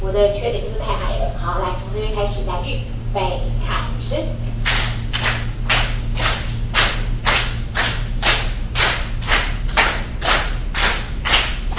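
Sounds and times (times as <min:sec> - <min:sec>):
speech: 0:00.1 - 0:04.5
group hand clapping in rhythm: 0:04.6 - 0:11.7.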